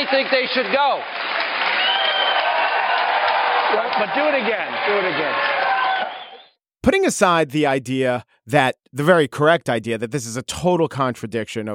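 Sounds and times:
speech: 0.0s - 1.3s, 3.7s - 5.6s, 6.8s - 11.7s
crowd clapping: 0.0s - 6.6s.

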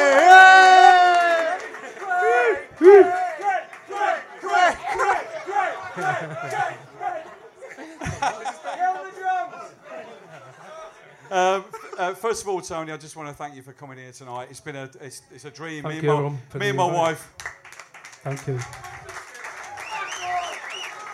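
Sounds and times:
audience applause and cheering: 0.0s - 7.4s, 17.4s - 21.1s
laughter: 0.0s - 12.3s
speech: 12.4s - 17.4s, 18.2s - 18.9s.

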